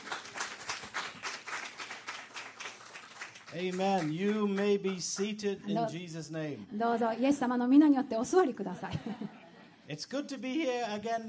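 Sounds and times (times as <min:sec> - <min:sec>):
audience applause: 0:00.0 - 0:05.4
speech: 0:03.5 - 0:11.2
laughter: 0:08.7 - 0:09.8.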